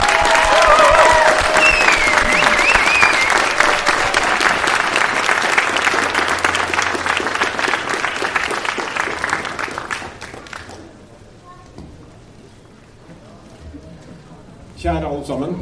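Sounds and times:
audience applause at a celebration for the Norwegian airline Flyr: 0:00.0 - 0:11.1
whistles: 0:01.5 - 0:03.5.

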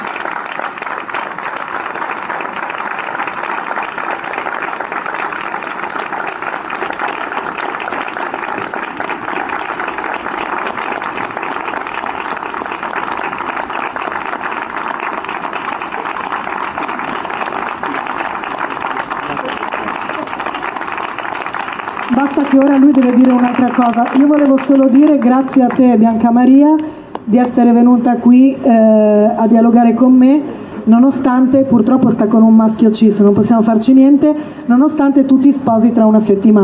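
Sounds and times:
audience applause: 0:00.0 - 0:26.1
speech: 0:22.5 - 0:36.6.

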